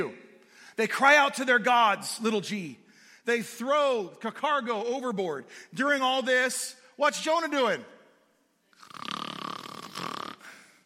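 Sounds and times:
speech: 0.0s - 0.2s, 0.8s - 8.0s
sleeping man snoring: 8.8s - 10.7s.

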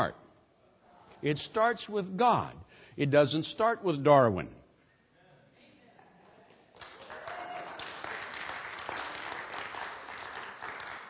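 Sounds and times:
speech: 0.0s - 0.2s, 1.2s - 4.6s
audience applause: 6.8s - 11.0s.

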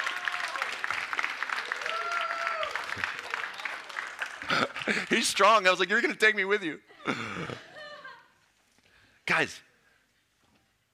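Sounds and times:
audience clapping: 0.0s - 5.9s
laughter: 4.4s - 5.3s, 6.9s - 8.4s
speech: 4.5s - 7.7s, 9.4s - 9.7s.

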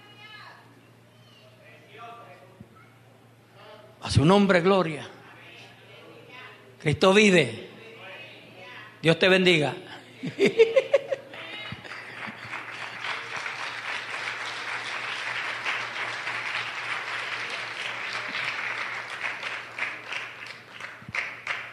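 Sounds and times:
speech: 4.0s - 5.2s, 6.8s - 7.7s, 9.0s - 10.8s
laughter: 10.2s - 14.8s
audience applause: 11.4s - 21.7s.

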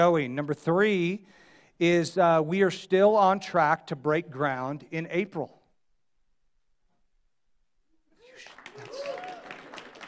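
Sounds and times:
speech: 0.0s - 5.6s
weak audience applause: 8.2s - 10.0s.

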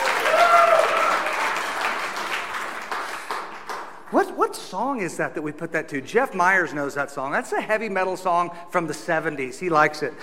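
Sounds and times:
audience clapping: 0.0s - 4.4s
speech: 4.1s - 10.2s.

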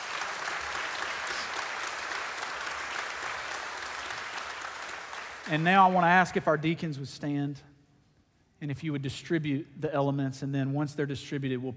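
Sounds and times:
audience applauding: 0.0s - 6.1s
speech: 5.5s - 7.7s, 8.6s - 11.7s.

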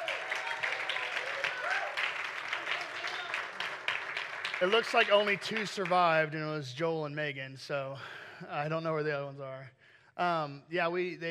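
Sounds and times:
audience applause: 0.0s - 6.3s
speech: 4.6s - 11.3s.

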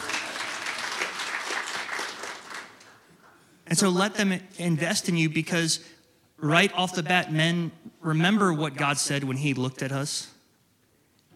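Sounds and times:
crowd clapping: 0.0s - 3.4s
speech: 3.7s - 10.4s.

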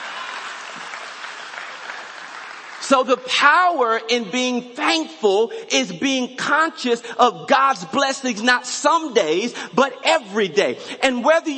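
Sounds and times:
church congregation clapping: 0.0s - 4.0s
speech: 2.9s - 11.5s.

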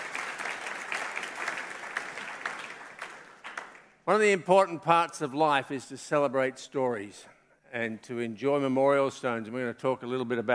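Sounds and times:
audience clapping for a birthday: 0.0s - 4.1s
speech: 4.1s - 10.5s.

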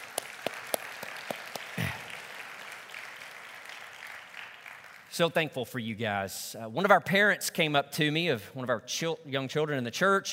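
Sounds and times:
sharp claps: 0.0s - 5.2s
crowd applauding: 0.0s - 5.3s
speech: 5.2s - 10.3s.

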